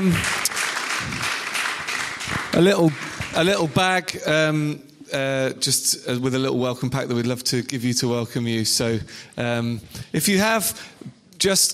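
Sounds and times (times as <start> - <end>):
speech: 0.0 - 0.4, 2.6 - 11.7
church congregation applauding to welcome newcomers: 0.0 - 4.1.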